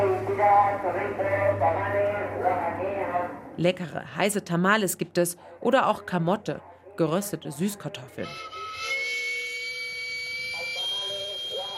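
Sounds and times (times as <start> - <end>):
murmured street noise: 0.0 - 11.7
speech: 0.7 - 9.0
steam vent whistle of a street-food cart: 8.2 - 11.7.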